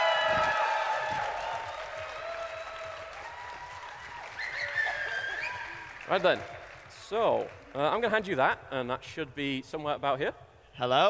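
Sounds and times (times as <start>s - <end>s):
audience applause: 0.0s - 8.0s
speech: 6.1s - 11.0s.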